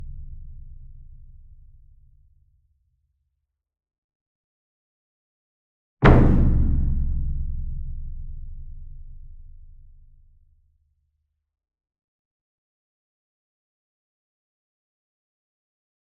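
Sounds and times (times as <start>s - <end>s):
single drum gong flam with soft beater: 6.0s - 8.6s.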